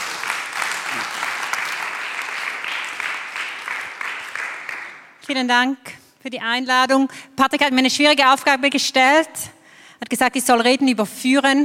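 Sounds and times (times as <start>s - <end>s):
audience applause: 0.0s - 5.2s
speech: 5.3s - 11.6s.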